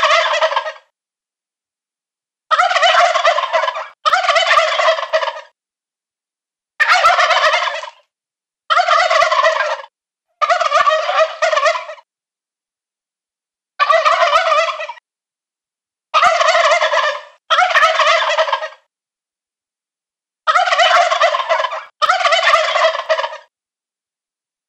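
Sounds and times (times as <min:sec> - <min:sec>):
male turkeys gobbling: 0:00.0 - 0:00.9, 0:02.5 - 0:05.6, 0:06.8 - 0:08.0, 0:08.7 - 0:12.1, 0:13.8 - 0:15.0, 0:16.2 - 0:18.9, 0:20.5 - 0:23.5.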